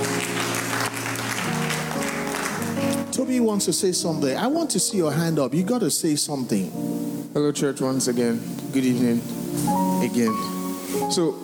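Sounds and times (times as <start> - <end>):
crowd applauding: 0.0 - 3.0
speech: 3.3 - 11.4.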